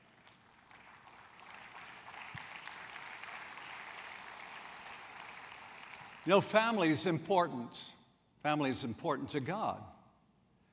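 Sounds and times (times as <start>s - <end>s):
audience applause: 0.0s - 6.2s
speech: 6.3s - 10.0s.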